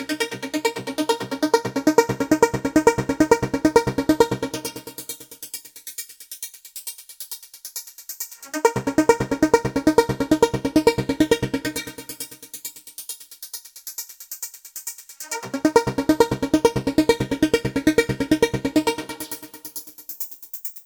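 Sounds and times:
plucky synth arpeggio with cut delay and reverb: 0.1s - 4.9s, 8.5s - 12.2s, 15.3s - 19.6s.

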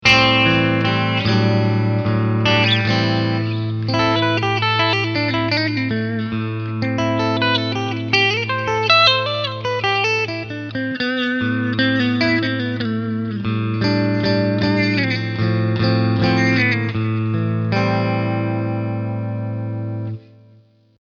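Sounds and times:
clean guitar picking with both humbucker and single-coil pickups: 0.0s - 20.8s.

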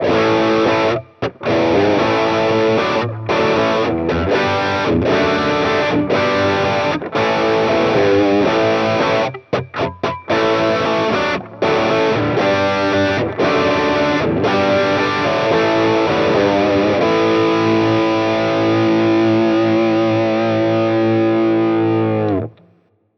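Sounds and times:
electric guitar through Mooer Cab X2 Twinverb 2x12 cabinet simulation with drive: 0.0s - 22.9s.

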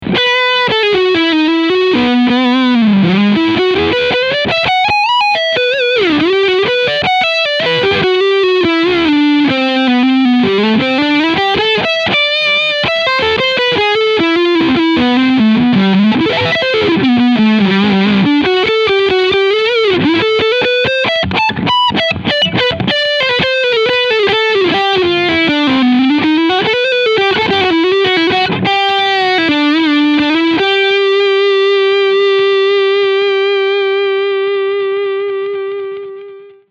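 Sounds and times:
lead guitar front pickup: 0.0s - 36.6s.

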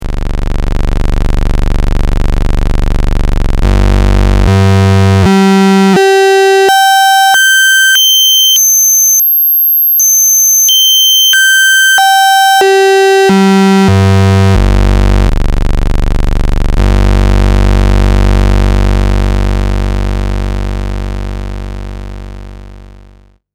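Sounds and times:
oscillator pulse tone: 0.4s - 21.8s.

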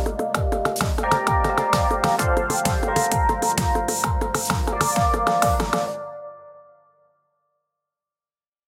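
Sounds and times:
trance music: 0.0s - 6.4s.

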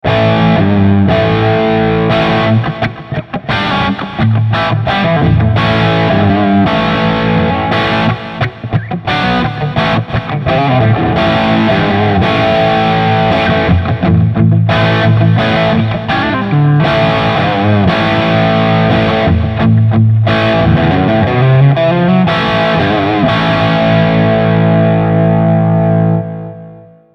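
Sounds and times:
classic crunch guitar tone: 0.0s - 27.1s.

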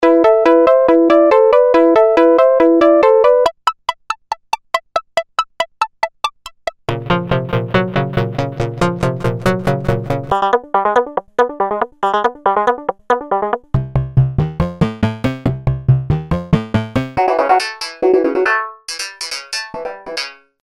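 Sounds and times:
melodic sequence: 0.0s - 20.4s.

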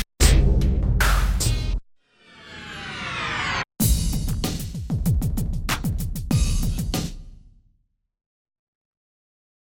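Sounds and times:
drums: 0.0s - 1.8s, 2.8s - 7.5s.

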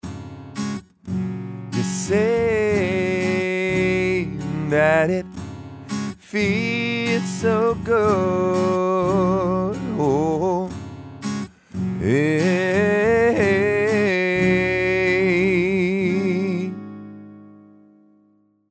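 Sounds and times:
singer on Audix VX10 microphone: 1.8s - 10.8s, 11.9s - 16.9s.

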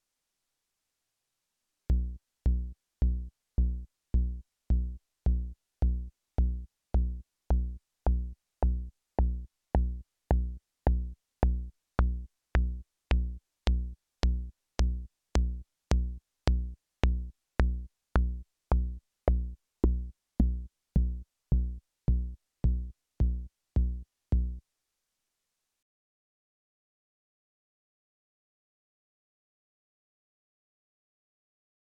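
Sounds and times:
Volca Kick pulse: 1.9s - 24.6s.

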